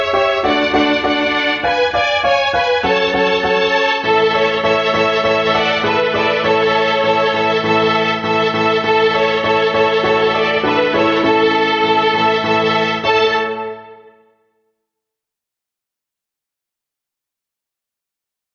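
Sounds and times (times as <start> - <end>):
beginner violin groups playing a Bohemian folk song: 0.0 - 14.2.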